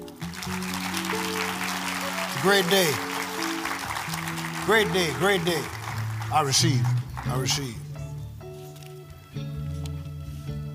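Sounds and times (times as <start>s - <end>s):
audience clapping: 0.0s - 7.9s
speech: 2.4s - 3.1s, 4.7s - 7.8s.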